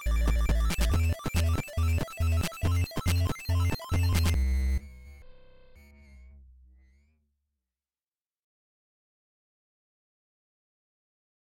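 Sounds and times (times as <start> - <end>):
music: 0.0 - 7.6.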